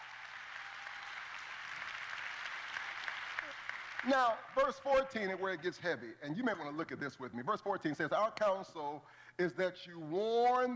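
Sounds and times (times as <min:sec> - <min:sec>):
audience applause: 0:00.0 - 0:05.0
speech: 0:04.0 - 0:10.7.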